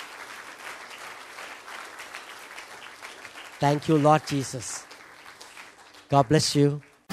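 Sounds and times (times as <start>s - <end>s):
audience applause: 0.0s - 7.0s
speech: 3.6s - 4.9s, 6.1s - 6.9s.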